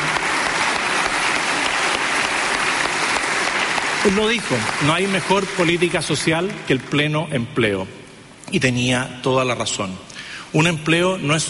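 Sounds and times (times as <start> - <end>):
crowd applauding: 0.0 - 7.2
speech: 4.0 - 11.4.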